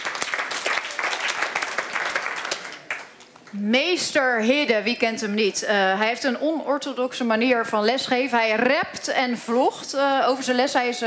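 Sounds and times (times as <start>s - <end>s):
audience applause: 0.0s - 3.5s
speech: 3.5s - 11.0s.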